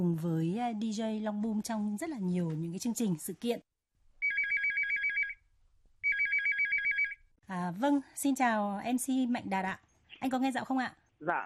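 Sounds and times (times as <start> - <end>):
speech: 0.0 - 3.7, 7.5 - 11.4
telephone ringtone as a radio show connects a call: 4.2 - 5.4, 6.0 - 7.3.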